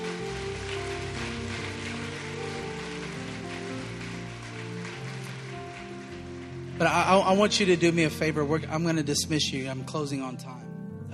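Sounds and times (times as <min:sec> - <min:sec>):
audience applause: 0:00.0 - 0:08.3
speech: 0:06.8 - 0:10.7.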